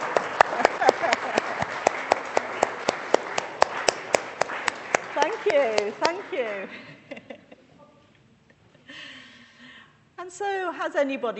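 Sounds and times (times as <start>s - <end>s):
audience clapping: 0.0s - 6.9s
laughter: 0.0s - 9.0s
speech: 6.0s - 7.0s, 10.4s - 11.3s.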